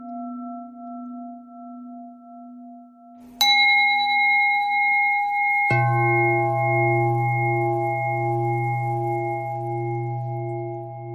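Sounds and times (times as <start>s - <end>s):
bells ringing: 3.4s - 10.9s.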